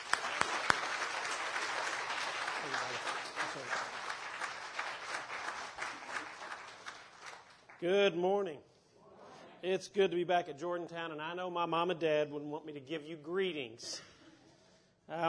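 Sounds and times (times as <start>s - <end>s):
church congregation applauding at a Wesleyan service: 0.0s - 7.9s
speech: 7.8s - 8.7s, 9.6s - 14.1s, 15.1s - 15.2s.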